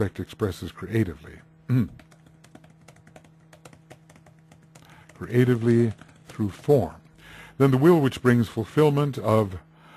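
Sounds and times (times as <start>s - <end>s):
speech: 0.0s - 2.1s, 5.2s - 7.0s, 7.6s - 9.7s
steady low hum: 0.0s - 9.9s
rapid keyboard typing while jotting down a note: 1.8s - 7.0s.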